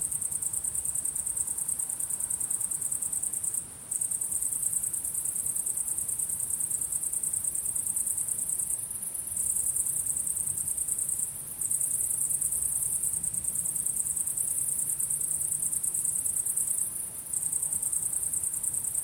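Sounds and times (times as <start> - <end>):
cricket chorus: 0.0 - 19.0
low background noise: 0.0 - 19.0.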